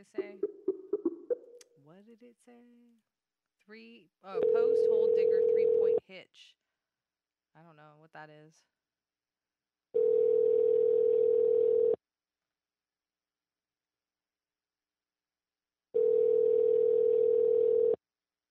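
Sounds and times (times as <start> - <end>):
speech: 0.0 - 0.5, 2.0 - 6.6, 7.6 - 8.8
ringback tone on an unanswered outgoing telephone call: 4.4 - 6.0, 10.0 - 12.0, 16.0 - 18.0.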